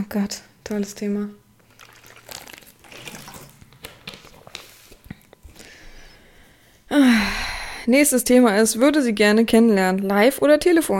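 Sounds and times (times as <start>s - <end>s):
speech: 0.0s - 1.4s, 7.9s - 10.9s
person drinking water: 1.6s - 5.7s.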